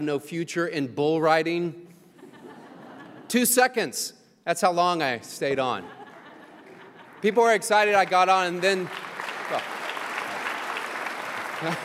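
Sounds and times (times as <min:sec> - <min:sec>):
speech: 0:00.0 - 0:01.9, 0:03.3 - 0:06.0, 0:07.2 - 0:09.7, 0:11.6 - 0:11.8
laughter: 0:02.2 - 0:03.4, 0:05.6 - 0:08.1, 0:11.4 - 0:11.8
audience clapping: 0:06.1 - 0:11.8.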